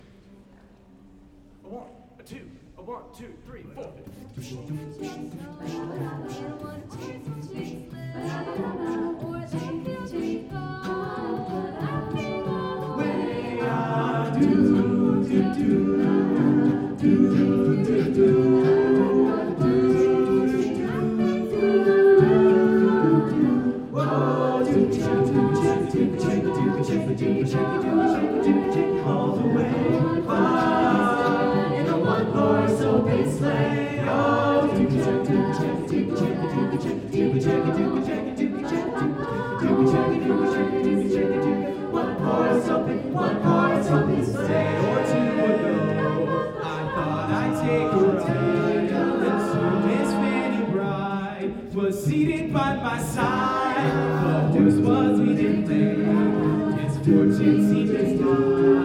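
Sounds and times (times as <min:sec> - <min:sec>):
Christmas song: 0:01.6 - 0:58.8.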